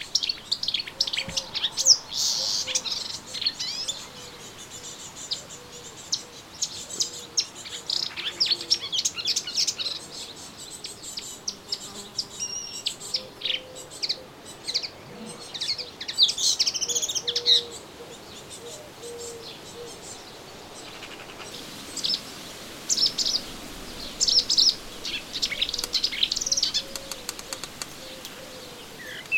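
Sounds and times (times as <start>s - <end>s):
melodious warbler singing in a garden: 0.0s - 29.3s.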